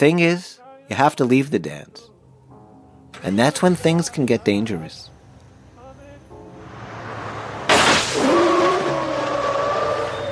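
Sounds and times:
speech: 0.0s - 2.1s, 3.1s - 5.1s
steady car engine rumble: 5.0s - 10.2s
car tire blowout: 6.6s - 10.2s.

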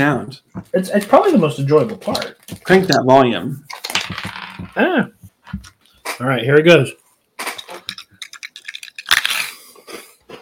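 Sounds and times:
speech: 0.0s - 7.0s
crunching freeze-dried Skittles: 8.5s - 10.2s.

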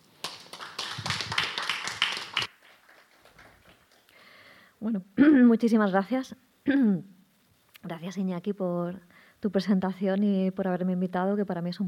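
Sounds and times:
audience applause: 0.2s - 4.1s
speech: 4.8s - 7.2s, 7.8s - 11.8s.

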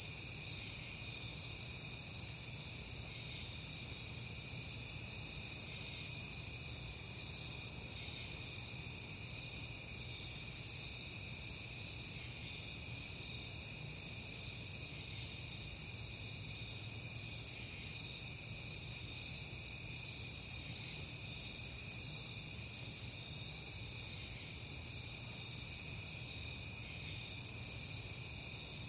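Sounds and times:
shrill cricket chorus: 0.0s - 28.8s.

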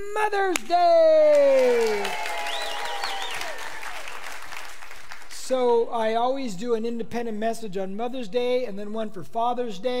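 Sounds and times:
speech: 0.0s - 2.2s, 5.5s - 9.9s
audience clapping: 0.5s - 5.5s.

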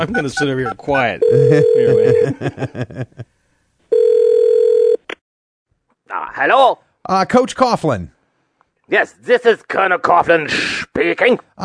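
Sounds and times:
speech: 0.0s - 3.4s, 6.2s - 8.2s, 8.9s - 11.6s
telephone dial tone: 1.2s - 2.2s, 3.9s - 5.1s.

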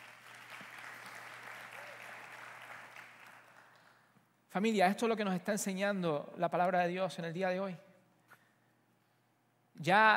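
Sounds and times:
audience applause: 0.0s - 3.8s
speech: 4.5s - 7.8s, 9.8s - 10.1s.

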